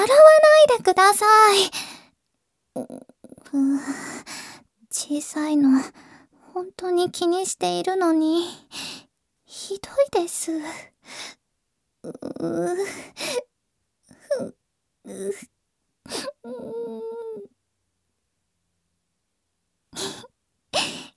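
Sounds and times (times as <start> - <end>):
person fake crying with sobbing, gasping bursts and a wail: 0.0 - 1.7
speech: 0.0 - 1.9, 5.0 - 11.4, 12.0 - 13.5, 14.3 - 15.5, 16.1 - 17.5.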